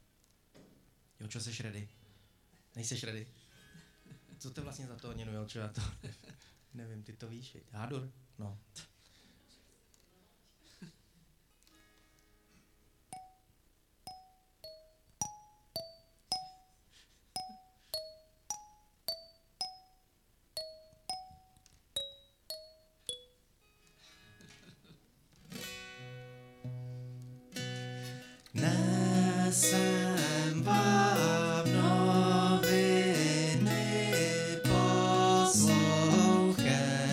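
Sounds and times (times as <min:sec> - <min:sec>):
speech: 0:01.2 - 0:02.0, 0:02.8 - 0:03.4, 0:04.4 - 0:08.9
kalimba playing a prelude: 0:13.1 - 0:13.5, 0:14.1 - 0:16.8, 0:17.4 - 0:20.0, 0:20.6 - 0:23.4, 0:28.6 - 0:37.1.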